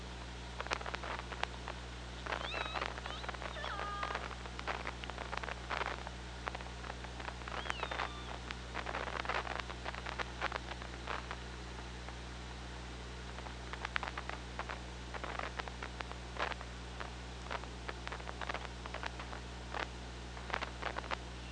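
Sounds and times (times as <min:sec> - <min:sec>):
steady low hum: 0:00.0 - 0:21.5
killer whale calls: 0:02.3 - 0:04.3, 0:07.5 - 0:08.4.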